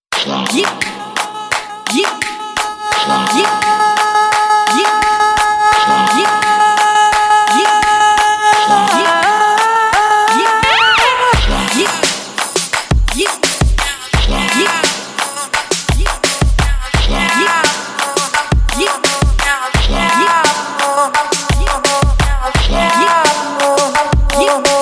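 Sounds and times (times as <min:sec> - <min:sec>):
Arabic music: 0:00.2 - 0:24.8.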